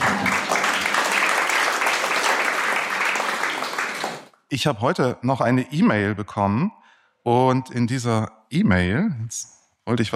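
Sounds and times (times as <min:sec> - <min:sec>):
audience applause: 0:00.0 - 0:04.3
speech: 0:04.5 - 0:10.1.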